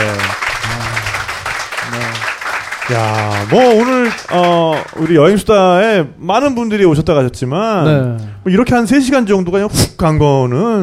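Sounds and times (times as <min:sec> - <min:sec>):
audience applause: 0:00.0 - 0:05.5
speech: 0:02.9 - 0:10.8.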